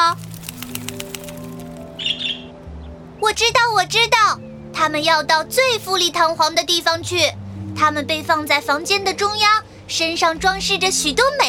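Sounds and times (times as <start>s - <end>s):
sparrow wings flapping: 0.0s - 2.1s
sparrow chirping: 0.0s - 3.3s
speech: 3.2s - 11.4s.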